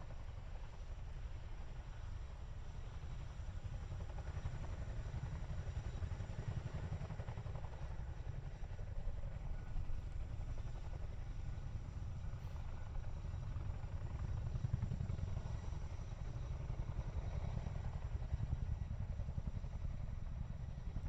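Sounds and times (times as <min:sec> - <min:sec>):
Chinook helicopter hovering and passing: 0:00.0 - 0:21.0.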